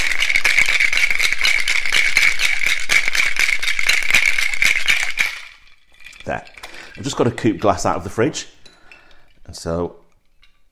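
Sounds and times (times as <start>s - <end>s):
cocktail shaker rattling with ice: 0.0s - 8.3s
speech: 6.3s - 8.6s, 9.5s - 10.0s.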